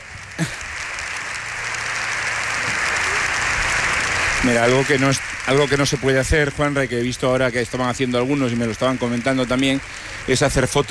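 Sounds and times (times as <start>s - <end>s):
applause from large crowd in parliament chamber: 0.0s - 10.8s
speech: 4.4s - 10.8s.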